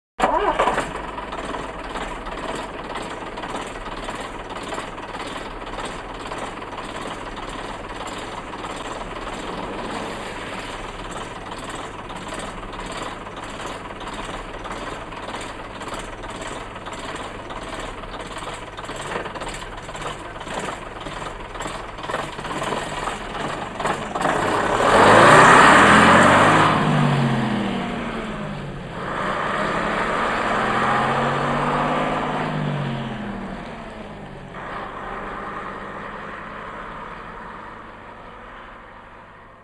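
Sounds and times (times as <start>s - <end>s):
1950s bus starting and pulling away: 0.2s - 39.6s.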